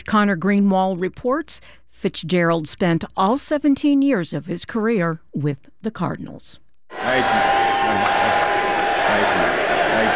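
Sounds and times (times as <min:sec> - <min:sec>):
speech: 0:00.1 - 0:08.0
crowd chanting at Fitzgerald's induction ceremony in Canton, Ohio: 0:06.9 - 0:10.1.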